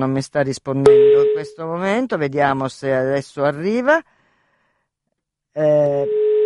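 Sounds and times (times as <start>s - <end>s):
speech: 0.0s - 4.1s, 5.6s - 6.2s
telephone ringing tone on an outgoing call: 0.9s - 1.6s, 6.0s - 6.4s.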